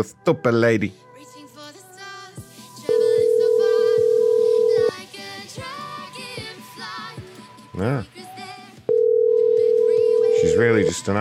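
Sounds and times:
speech: 0:00.0 - 0:01.1, 0:07.8 - 0:08.2, 0:10.6 - 0:11.1
rhythmic music: 0:00.0 - 0:11.1
telephone ringback tone: 0:02.9 - 0:04.9, 0:08.9 - 0:10.9.

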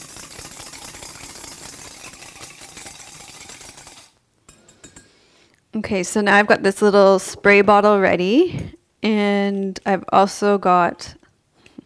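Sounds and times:
whisk mixing ingredients in a bowl: 0:00.0 - 0:05.1
speech: 0:05.7 - 0:11.2.

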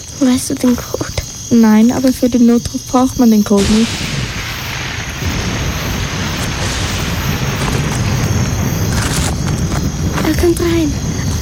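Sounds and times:
speech: 0:00.2 - 0:04.1, 0:10.4 - 0:11.1
thunder during a storm: 0:00.2 - 0:11.4
broad hissing wash: 0:03.5 - 0:11.4.

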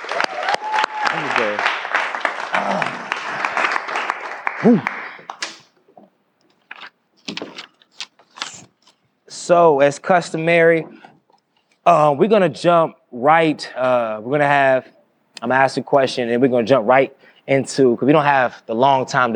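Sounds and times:
audience applause: 0:00.0 - 0:05.5
speech: 0:04.6 - 0:05.0, 0:09.5 - 0:11.0, 0:11.9 - 0:19.3.

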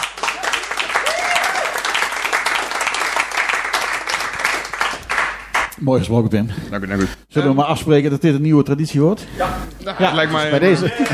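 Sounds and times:
crowd applause: 0:00.0 - 0:05.7
speech: 0:05.8 - 0:11.1
laughter: 0:09.8 - 0:11.1.

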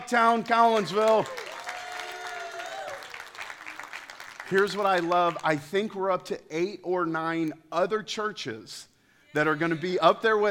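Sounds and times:
speech: 0:00.1 - 0:01.5, 0:04.5 - 0:10.5
audience clapping: 0:00.2 - 0:06.0.

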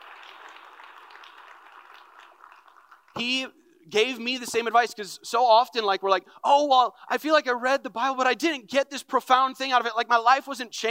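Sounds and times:
audience clapping: 0:00.0 - 0:03.4
speech: 0:03.2 - 0:10.8.

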